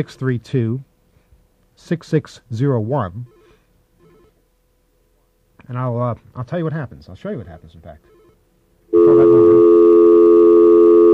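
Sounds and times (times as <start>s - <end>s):
speech: 0.0s - 0.9s, 1.8s - 3.4s, 5.7s - 8.2s
steady telephone dialing tone: 8.1s - 11.1s.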